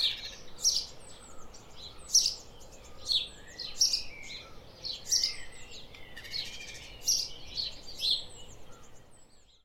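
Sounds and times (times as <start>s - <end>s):
house sparrow Passer domesticus chirping: 0.0s - 9.6s.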